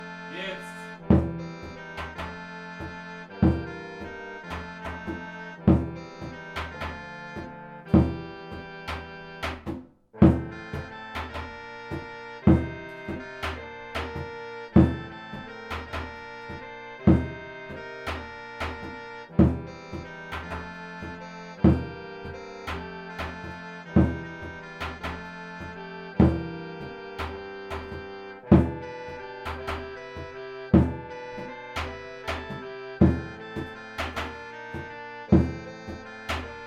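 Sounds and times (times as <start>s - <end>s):
slow surdo melody: 0.0s - 36.6s.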